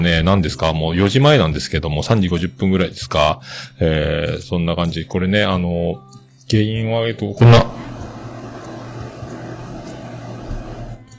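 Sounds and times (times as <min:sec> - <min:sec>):
speech: 0:00.0 - 0:07.8
air conditioner running: 0:07.4 - 0:11.1.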